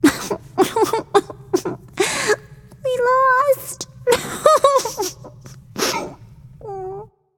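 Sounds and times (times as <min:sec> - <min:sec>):
person crying nonverbally: 0:00.0 - 0:02.5, 0:04.0 - 0:07.1.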